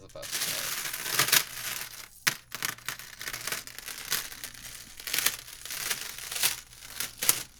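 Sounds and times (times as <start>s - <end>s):
metal chains rattling: 0.0s - 7.5s.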